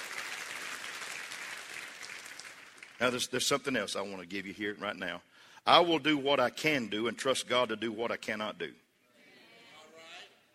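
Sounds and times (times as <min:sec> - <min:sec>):
audience clapping: 0:00.0 - 0:03.3
speech: 0:03.0 - 0:08.8.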